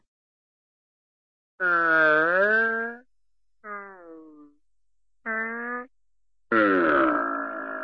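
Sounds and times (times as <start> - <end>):
cartoon bear cub groaning: 1.6 - 3.1, 3.7 - 4.6, 5.3 - 5.9, 6.5 - 7.8.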